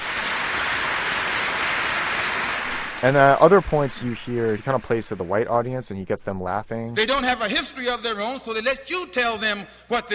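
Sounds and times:
raucous applause from Nation of Islam members: 0.0 - 6.0
speech: 3.0 - 10.1.

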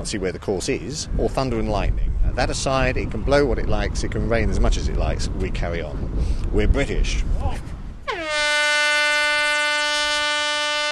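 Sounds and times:
speech: 0.0 - 7.7
loud horn starting the round: 8.1 - 10.9.

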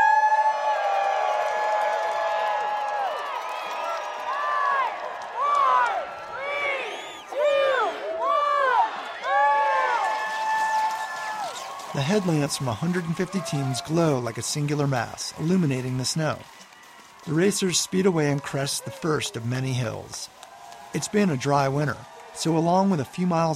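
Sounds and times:
crowd cheering at race start: 0.0 - 23.5
clapping: 0.9 - 6.0, 9.9 - 23.5
speech: 12.0 - 16.6, 17.2 - 23.5.

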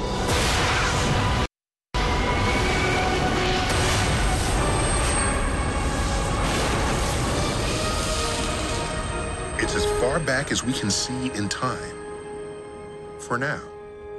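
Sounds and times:
cinematic Big Bang explosion roar and rumble: 0.2 - 10.3
speech: 10.1 - 12.0, 13.3 - 13.7.

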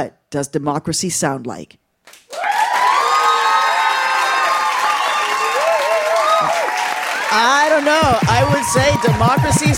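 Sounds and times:
speech: 0.0 - 2.2, 7.3 - 9.7
high shouts from the crowd: 2.3 - 9.7
live studio audience cheering and whooping in Austin, Texas: 2.3 - 9.7.

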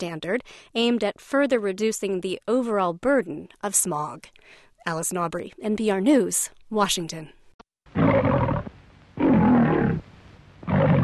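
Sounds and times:
speech: 0.0 - 7.4
lion roaring: 7.9 - 10.0, 10.6 - 11.0.

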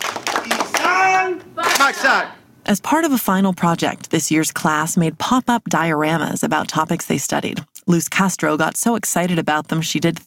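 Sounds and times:
ninth grade class unity clap hand claps: 0.0 - 2.0
ninth grade class drawn-out vocal shout: 0.4 - 2.4
speech: 0.5 - 10.2.

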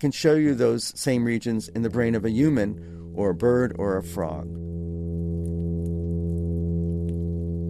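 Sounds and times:
speech: 0.0 - 4.7
fish humming underwater: 2.4 - 7.6
faint ticks: 4.6 - 7.6.

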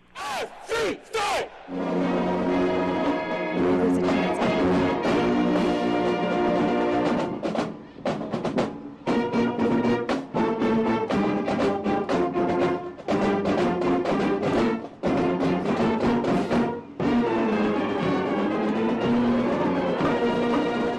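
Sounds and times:
crowd noise: 0.0 - 6.2
marching band playing: 0.3 - 20.9.

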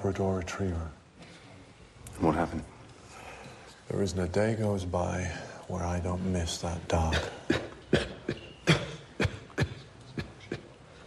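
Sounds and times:
speech: 0.0 - 1.0, 2.2 - 2.8, 3.9 - 8.1
person coughing: 7.1 - 10.7.

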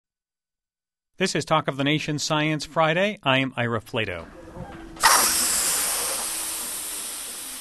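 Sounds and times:
speech: 1.2 - 4.7
helium balloon being filled: 4.9 - 7.5.

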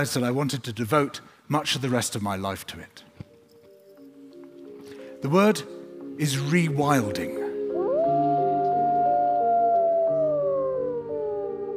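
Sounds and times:
speech: 0.0 - 3.1, 5.2 - 7.4
gray wolves howling: 7.7 - 11.7.

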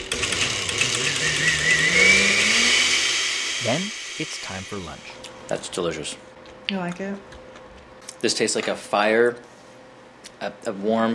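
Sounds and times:
blender pulsing cauliflower soup: 0.0 - 5.2
speech: 3.7 - 7.4, 8.2 - 9.5, 10.4 - 11.1.

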